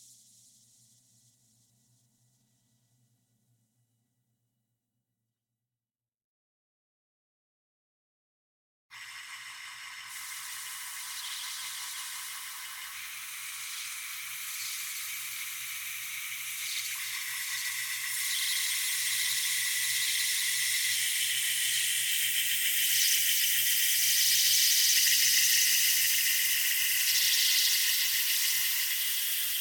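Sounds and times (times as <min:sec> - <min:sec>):
insectoid humming synthetic drone: 0:10.2 - 0:29.5.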